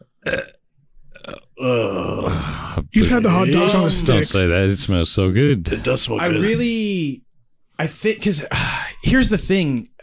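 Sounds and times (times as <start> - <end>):
person burping: 0.0 - 2.8
speech: 1.6 - 7.2, 7.8 - 9.9.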